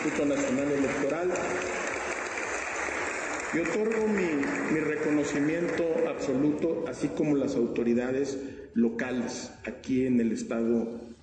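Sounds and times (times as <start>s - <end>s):
speech: 0.0s - 1.8s, 3.5s - 11.2s
crowd applause: 0.0s - 6.4s.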